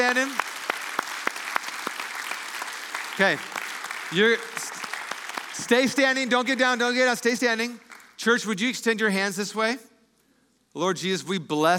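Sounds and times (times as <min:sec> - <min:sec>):
speech: 0:00.0 - 0:00.6, 0:03.2 - 0:04.8, 0:05.6 - 0:09.9, 0:10.8 - 0:11.7
audience applauding: 0:00.0 - 0:08.2.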